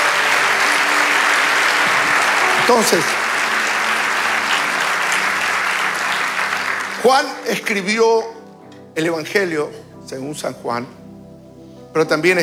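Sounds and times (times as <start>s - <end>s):
audience applauding: 0.0s - 8.7s
speech: 2.7s - 3.2s, 7.0s - 8.4s, 9.0s - 11.0s, 11.9s - 12.4s.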